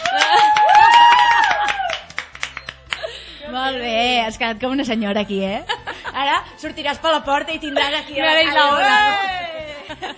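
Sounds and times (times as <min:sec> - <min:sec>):
person whooping: 0:00.0 - 0:02.1
small group applauding: 0:00.0 - 0:03.2
speech: 0:04.3 - 0:09.4.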